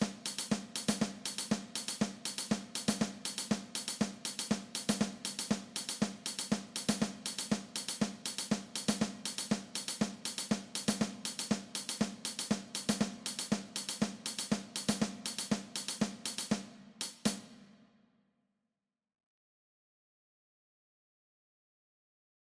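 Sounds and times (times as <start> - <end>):
drum kit percussion: 0.0 - 17.8.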